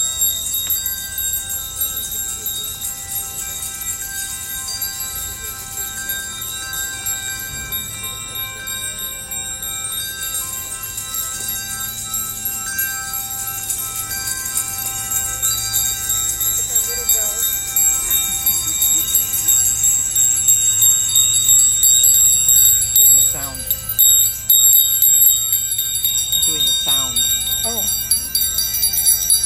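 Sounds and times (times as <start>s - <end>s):
bells ringing for justice: 0.0s - 29.4s
laughter: 16.6s - 21.1s.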